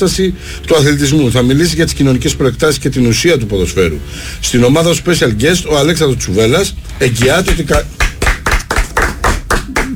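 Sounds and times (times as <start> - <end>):
speech: 0.0 - 8.0
hand clapping: 7.2 - 9.9.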